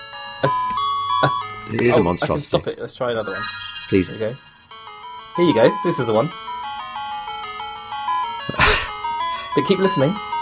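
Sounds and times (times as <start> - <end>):
classical music played as digital square-wave beeps: 0.4 - 8.2
speech: 1.2 - 4.5, 5.4 - 6.5, 9.6 - 10.3.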